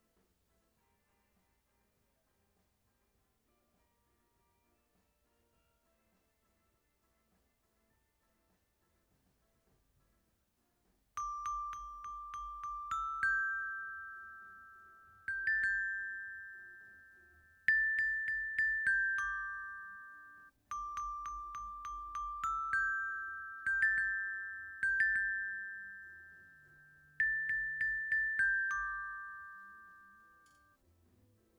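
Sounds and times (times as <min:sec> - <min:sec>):
xylophone: 0:11.2 - 0:30.8.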